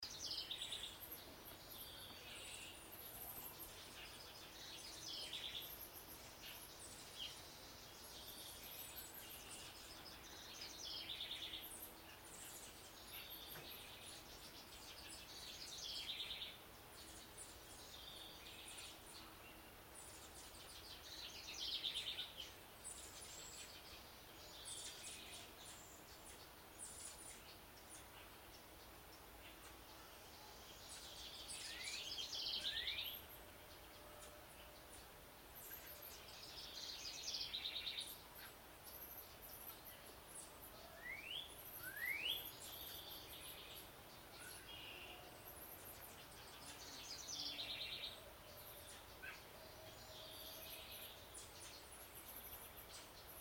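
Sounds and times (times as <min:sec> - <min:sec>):
morning birdsong in a garden: 0:00.0 - 0:53.3.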